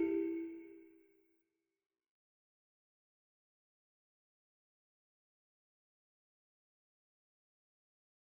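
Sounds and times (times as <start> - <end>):
balafon: 0.0 - 0.6.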